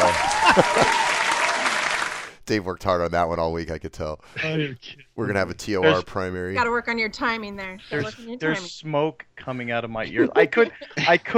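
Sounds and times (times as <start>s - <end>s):
laughter: 0.0s - 1.2s, 4.4s - 6.2s, 9.4s - 11.3s
applause: 0.0s - 2.4s
speech: 0.6s - 1.0s, 2.5s - 11.3s.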